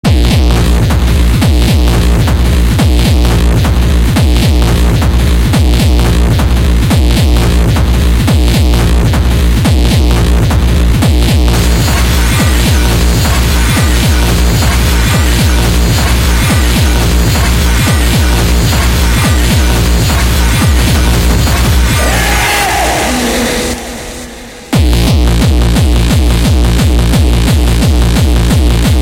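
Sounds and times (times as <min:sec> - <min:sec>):
mega hard techno: 0:00.0 - 0:29.0.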